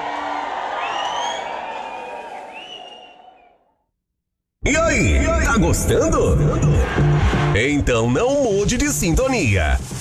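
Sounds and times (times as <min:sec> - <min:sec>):
audience applause: 0:00.0 - 0:03.5
speech: 0:04.6 - 0:09.9.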